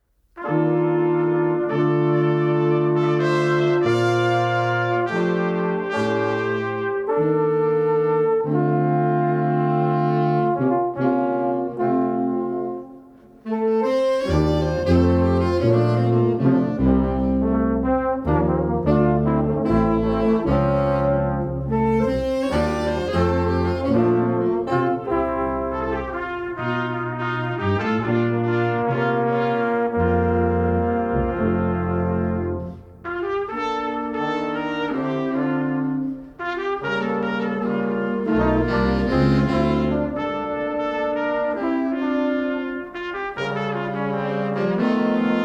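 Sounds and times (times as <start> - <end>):
brass band playing: 0.4 - 45.4.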